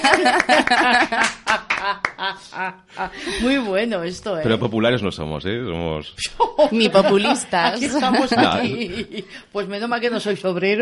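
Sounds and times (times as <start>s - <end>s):
hand claps: 0.0s - 2.3s
laughter: 0.0s - 3.7s, 6.2s - 9.5s
speech: 0.0s - 10.8s.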